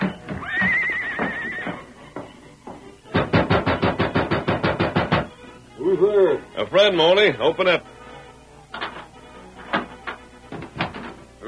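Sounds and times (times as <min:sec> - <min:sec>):
Silver the Lone Ranger's horse whinnying: 0:00.0 - 0:02.0
Silver's hoofbeats at an even trot: 0:00.0 - 0:07.8, 0:08.6 - 0:11.4
speech: 0:06.6 - 0:08.0.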